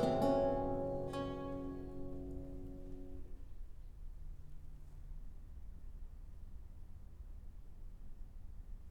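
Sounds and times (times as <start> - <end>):
lute playing a gavotte: 0.0 - 3.3.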